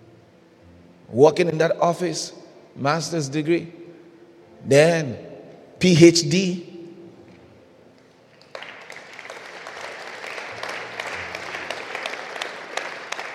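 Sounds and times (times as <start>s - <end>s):
speech: 1.1s - 3.8s, 4.6s - 6.7s
audience clapping: 8.0s - 13.3s.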